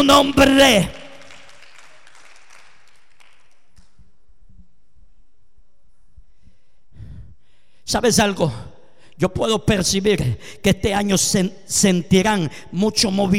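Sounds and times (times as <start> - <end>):
speech: 0.0 - 1.0, 7.9 - 13.3
audience applause: 1.0 - 3.6.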